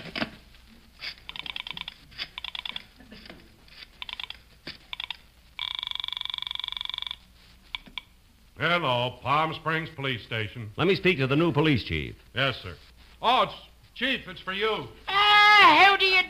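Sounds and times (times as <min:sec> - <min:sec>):
telephone ringing tone: 0:01.3 - 0:02.8, 0:04.0 - 0:08.0
telephone touch-tone dialing beeps: 0:04.0 - 0:08.0
speech: 0:08.6 - 0:15.0, 0:15.6 - 0:16.2.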